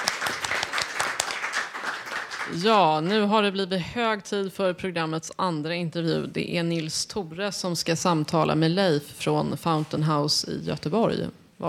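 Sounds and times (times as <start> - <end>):
audience applause: 0.0 - 2.9
speech: 2.5 - 11.6.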